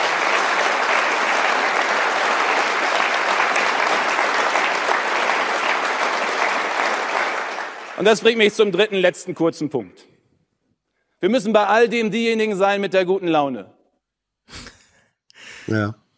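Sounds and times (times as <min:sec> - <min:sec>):
audience applause: 0:00.0 - 0:08.8
speech: 0:08.0 - 0:10.1, 0:11.2 - 0:13.8, 0:15.7 - 0:16.0.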